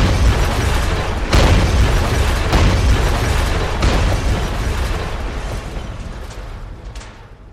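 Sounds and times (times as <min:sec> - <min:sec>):
crumbling and falling debris: 0:00.0 - 0:07.5
heavy sledgehammer blows striking a house: 0:00.0 - 0:07.5.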